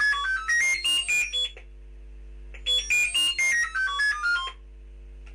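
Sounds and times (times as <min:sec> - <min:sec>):
electronic space command belt toy beeps: 0:00.0 - 0:01.6, 0:02.6 - 0:04.6.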